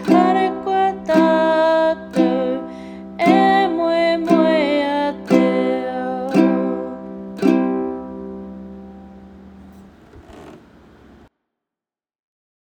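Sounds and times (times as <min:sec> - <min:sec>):
ukulele: 0:00.0 - 0:10.0.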